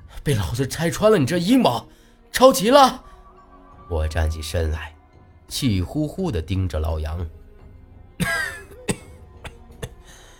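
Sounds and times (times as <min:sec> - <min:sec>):
speech: 0:00.2 - 0:03.1, 0:03.9 - 0:07.4, 0:08.2 - 0:08.4
weak coughing: 0:08.2 - 0:10.2.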